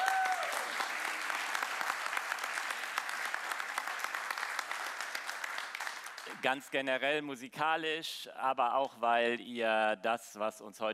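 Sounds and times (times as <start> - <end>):
audience applause: 0.0 - 6.5
speech: 6.3 - 10.9.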